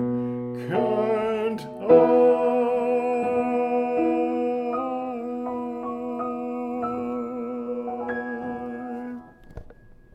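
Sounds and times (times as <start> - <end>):
soprano singing: 0.0 - 9.8.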